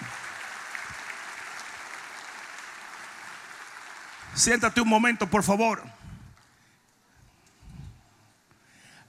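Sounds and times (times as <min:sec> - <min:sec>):
audience applauding: 0:00.0 - 0:05.3
speech: 0:04.4 - 0:06.0.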